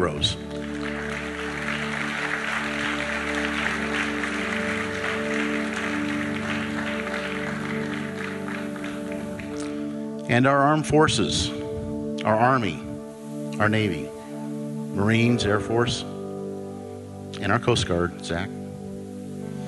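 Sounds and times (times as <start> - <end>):
speech: 0.0 - 0.5, 10.3 - 11.6, 12.2 - 12.8, 13.6 - 14.2, 15.0 - 16.1, 17.4 - 18.6
audience clapping: 0.0 - 10.0.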